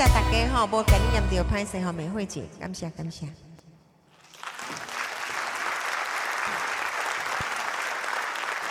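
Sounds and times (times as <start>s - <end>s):
speech: 0.0s - 3.5s
audience applause: 4.2s - 8.6s.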